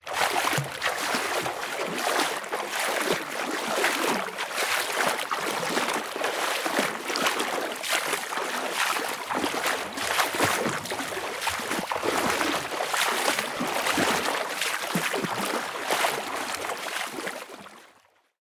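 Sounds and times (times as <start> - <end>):
person swimming in a pool: 0.0 - 18.0.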